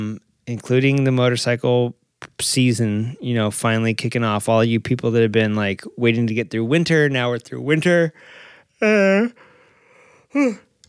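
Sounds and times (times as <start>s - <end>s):
speech: 0.0s - 9.4s, 10.3s - 10.7s
person yawning: 10.3s - 10.7s.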